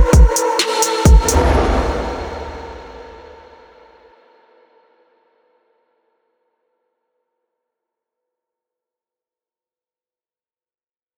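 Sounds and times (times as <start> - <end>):
atmospheric remix music: 0.0 - 3.4.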